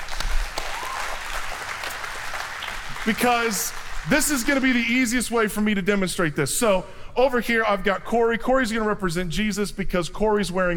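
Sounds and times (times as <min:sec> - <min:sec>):
audience applause welcoming two people onto a stage during a church message: 0:00.0 - 0:04.8
speech: 0:03.0 - 0:10.7.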